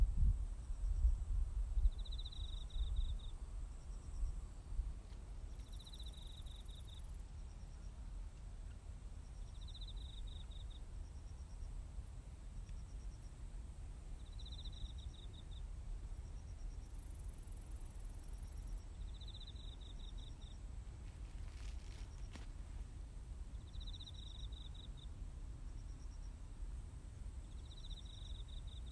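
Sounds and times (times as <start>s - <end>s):
cricket chirping: 0.1s - 28.9s.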